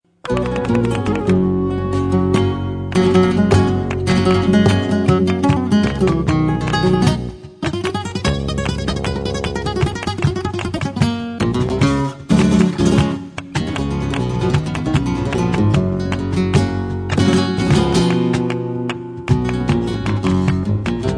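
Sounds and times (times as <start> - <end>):
flamenco guitar: 0.1 - 21.1.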